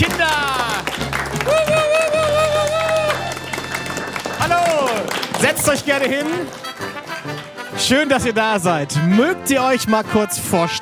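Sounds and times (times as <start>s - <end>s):
audience applause: 0.0s - 7.6s
speech: 5.7s - 6.7s, 7.8s - 10.7s.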